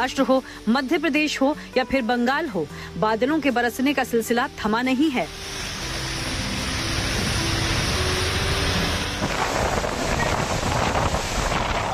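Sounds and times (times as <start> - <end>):
speech: 0.0 - 5.8
strong wind during a storm: 6.2 - 11.9.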